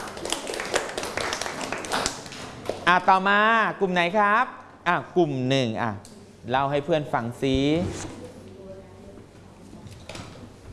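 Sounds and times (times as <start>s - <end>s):
group clapping for classmates: 0.0s - 3.0s
speech: 2.9s - 8.2s.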